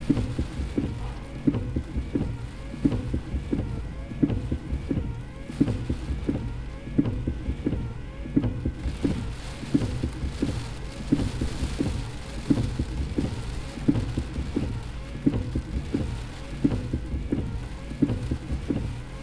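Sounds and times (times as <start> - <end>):
rain in gusts: 0.0 - 19.2
windshield wipers: 0.0 - 19.2.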